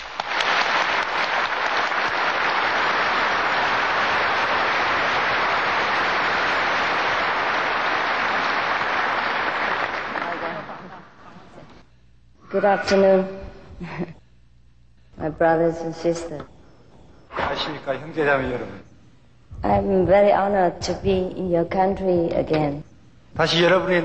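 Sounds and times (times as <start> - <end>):
audience applause welcoming a guest speaker: 0.0 - 11.6
speech: 12.6 - 14.1, 15.2 - 16.6, 17.6 - 18.9, 19.6 - 22.8, 23.4 - 24.0.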